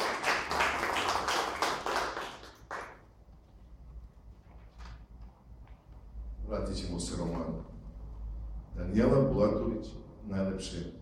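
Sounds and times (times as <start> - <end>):
audience applause after a musical number at a literary event: 0.0 - 3.0
speech: 6.5 - 7.8, 8.8 - 11.0.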